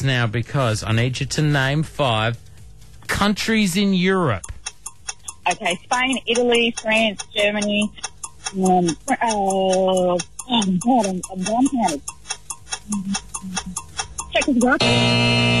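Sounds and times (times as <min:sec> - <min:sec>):
speech: 0:00.0 - 0:02.5, 0:03.1 - 0:04.5, 0:05.5 - 0:12.1, 0:12.9 - 0:13.8, 0:14.4 - 0:15.5
countdown clock ticking: 0:00.0 - 0:15.5
harsh buzzer: 0:14.8 - 0:15.5.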